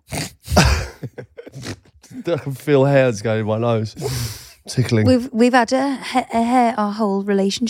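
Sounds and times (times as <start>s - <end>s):
person sneezing: 0.0s - 1.8s
speech: 2.3s - 7.6s
faint sniffs: 4.0s - 4.6s.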